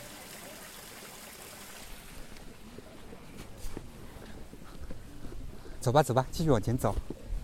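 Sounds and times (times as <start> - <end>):
babbling mountain stream: 0.0 - 3.2
speech: 5.8 - 7.2.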